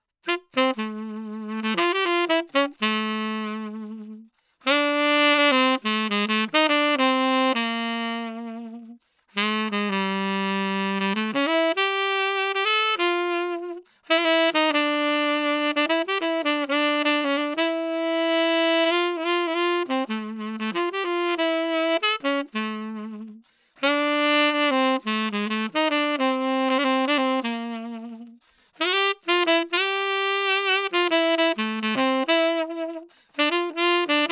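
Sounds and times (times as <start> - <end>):
saxophone: 0.0 - 34.3.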